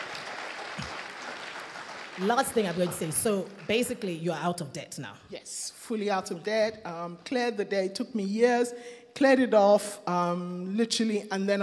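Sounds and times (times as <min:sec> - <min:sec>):
applause: 0:00.0 - 0:04.2
speech: 0:02.2 - 0:11.6.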